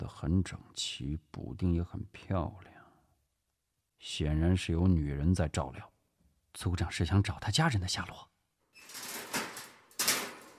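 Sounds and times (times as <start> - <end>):
speech: 0.2 - 2.7, 4.0 - 5.9, 6.6 - 9.1
prison cell door opening with dull knocks: 8.9 - 10.5.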